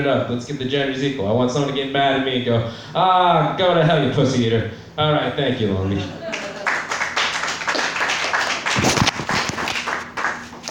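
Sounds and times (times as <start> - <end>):
speech: 0.0 - 6.3
audience clapping: 6.3 - 10.6.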